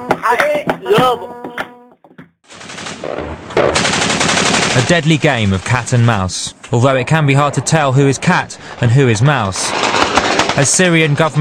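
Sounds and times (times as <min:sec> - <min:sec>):
speech: 0:00.0 - 0:01.4, 0:04.8 - 0:10.0, 0:10.6 - 0:11.4
aging anti-aircraft guns on trucks firing: 0:02.5 - 0:06.2, 0:06.8 - 0:11.4.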